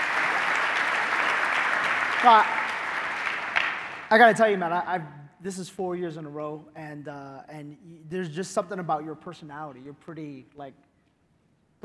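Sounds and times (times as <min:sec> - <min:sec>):
audience applause: 0:00.0 - 0:04.6
speech: 0:02.2 - 0:02.6, 0:04.1 - 0:10.9.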